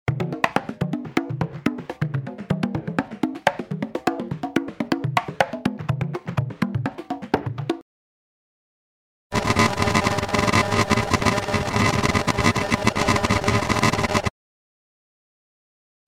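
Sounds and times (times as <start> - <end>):
percussion: 0.1 - 7.8, 9.3 - 14.3.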